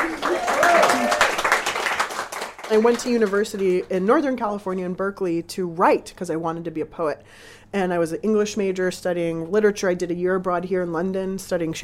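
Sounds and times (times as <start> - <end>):
audience applause at a live talk at a London restaurant: 0.0 - 3.4
speech: 2.7 - 11.8.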